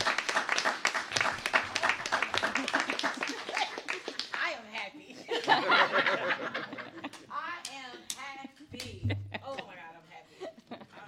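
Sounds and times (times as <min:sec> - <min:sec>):
round of applause: 0:00.0 - 0:04.5
laughter: 0:01.6 - 0:04.2, 0:05.2 - 0:07.4, 0:08.0 - 0:11.0.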